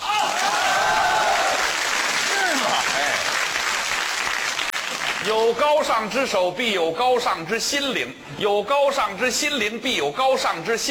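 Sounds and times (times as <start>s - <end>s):
audience applause: 0.2s - 5.3s
speech: 5.2s - 10.8s.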